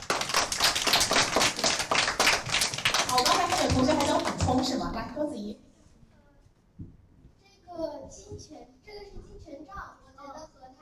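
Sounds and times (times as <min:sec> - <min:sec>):
classroom applause: 0:00.0 - 0:04.8
speech: 0:03.2 - 0:05.7.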